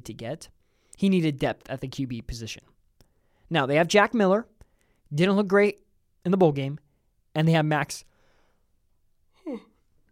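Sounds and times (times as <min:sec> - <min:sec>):
speech: 0:00.0 - 0:02.7, 0:03.5 - 0:04.5, 0:05.1 - 0:06.8, 0:07.4 - 0:08.1, 0:09.5 - 0:09.7
yawn: 0:09.4 - 0:09.8.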